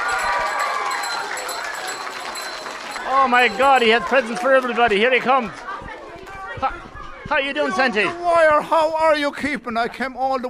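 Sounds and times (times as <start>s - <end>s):
children clapping: 0.0s - 6.4s
speech: 3.1s - 5.6s, 6.6s - 10.4s.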